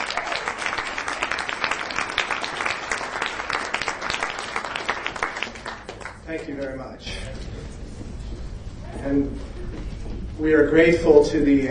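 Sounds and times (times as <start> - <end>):
audience applause: 0.0 - 6.2
speech: 6.3 - 7.5, 9.0 - 11.7.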